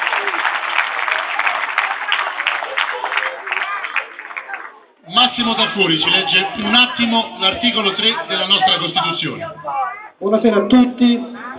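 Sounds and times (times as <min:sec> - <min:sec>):
audience applause: 0:00.0 - 0:06.9
speech: 0:05.4 - 0:11.3.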